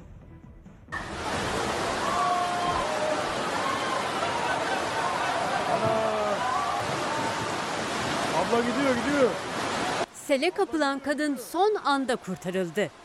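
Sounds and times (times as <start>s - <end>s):
heavy rain downpour: 1.0s - 10.2s
speech: 8.6s - 9.4s, 10.3s - 13.0s.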